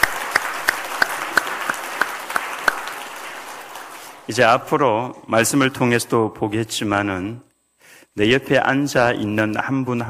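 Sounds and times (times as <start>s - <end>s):
audience applause: 0.0s - 4.7s
speech: 4.3s - 7.5s, 8.2s - 10.0s.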